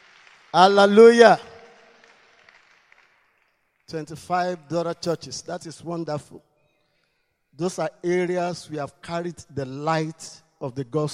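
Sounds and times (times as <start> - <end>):
audience clapping: 0.0 - 4.6
speech: 0.5 - 1.5, 3.9 - 6.5, 7.6 - 11.1.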